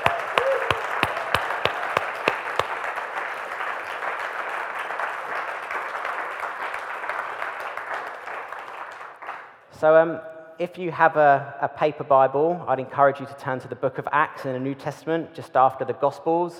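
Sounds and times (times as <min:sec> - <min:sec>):
audience applause: 0:00.0 - 0:09.4
speech: 0:09.8 - 0:16.5.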